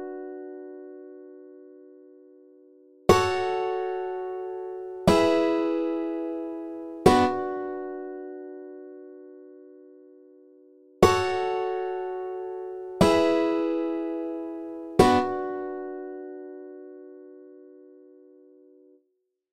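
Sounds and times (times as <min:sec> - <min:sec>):
guitar: 0:03.1 - 0:09.7, 0:11.0 - 0:17.9.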